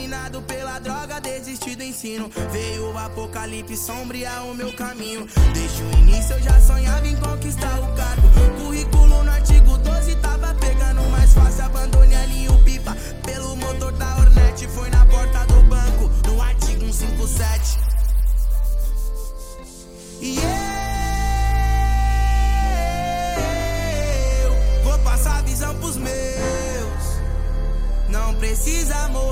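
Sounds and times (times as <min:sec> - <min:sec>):
deep bass: 0:05.4 - 0:19.2, 0:20.5 - 0:29.2.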